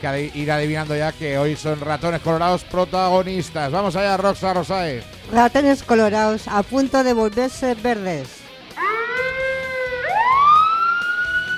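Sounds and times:
speech: 0.0 - 8.4
police car siren wailing: 8.7 - 11.5.

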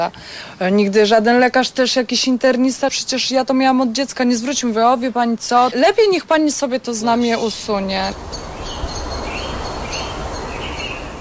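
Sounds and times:
speech: 0.0 - 8.4
steady hiss of outdoor noise in a park: 0.0 - 11.1
birds singing in a park in fine weather: 7.0 - 11.1.

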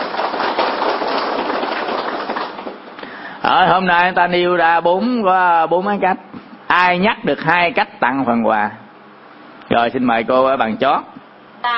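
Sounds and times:
audience applause: 0.0 - 3.0
speech: 3.5 - 8.8, 9.7 - 11.7.

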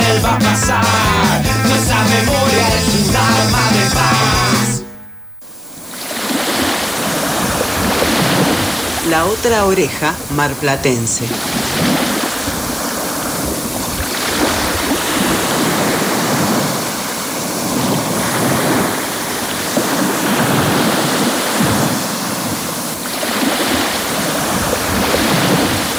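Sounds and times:
speech: 0.3 - 4.2, 9.1 - 12.0
sea waves breaking: 5.6 - 25.9.

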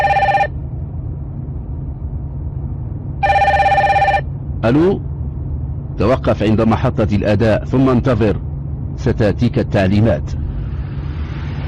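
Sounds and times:
mobile phone ringing with trilling electronic tones: 0.0 - 0.5, 3.2 - 4.2
car engine rumbling on a motorway: 0.0 - 11.6
speech: 4.6 - 5.1, 6.0 - 8.4, 9.0 - 10.4.

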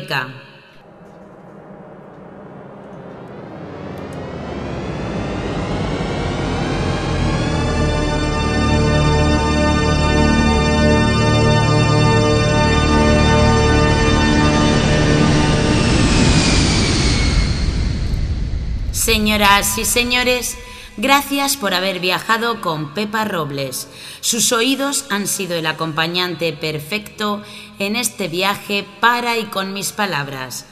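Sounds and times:
speech: 0.1 - 0.5, 19.1 - 30.7
airplane engine roar during a forced landing: 0.7 - 22.1
train pulling into the next station: 0.8 - 22.4.

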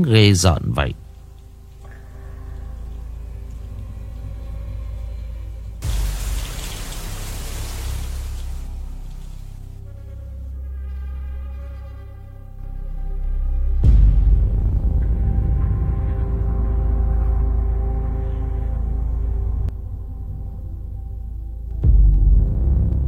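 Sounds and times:
speech: 0.0 - 1.0
heavy rain at the Cửa Lò seaside in Nghệ An Vietnam: 0.9 - 4.9, 5.8 - 9.8
low droning hum: 0.9 - 23.0.

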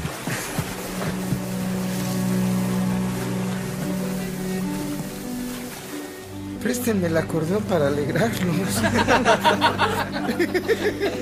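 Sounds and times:
water lapping and splashing around a canoe: 0.0 - 6.2
speech: 6.6 - 11.1
laughter: 8.5 - 11.1.

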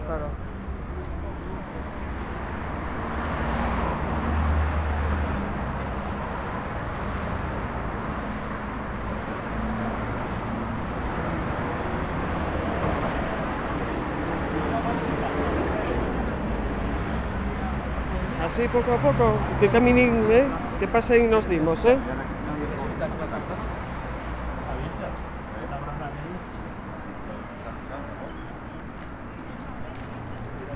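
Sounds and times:
busy road traffic with buses or trucks: 0.0 - 30.7
speech: 0.1 - 0.6, 18.6 - 22.3.

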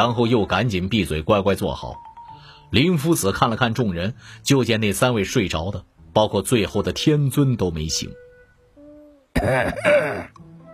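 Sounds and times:
speech: 0.0 - 2.1, 2.7 - 8.3, 9.4 - 10.5
light cough: 9.4 - 10.3
throat clearing: 9.4 - 10.4.

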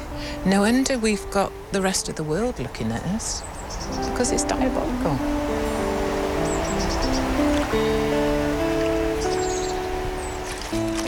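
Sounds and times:
steady rushing river flow: 0.0 - 11.0
speech: 0.4 - 5.4, 7.7 - 8.3
bucket scooping water from a protected river in the UK: 10.4 - 11.0.

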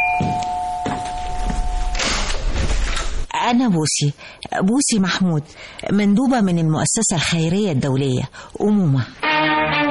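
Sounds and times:
electronic doorbell ringing: 0.0 - 2.0
rustling noise: 1.0 - 3.3
speech: 3.5 - 9.8.

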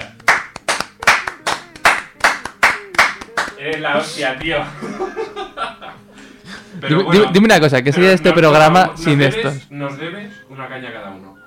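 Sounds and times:
hands clapping: 0.0 - 4.8
laughter: 1.0 - 9.4
speech: 3.6 - 5.2, 6.8 - 11.4.

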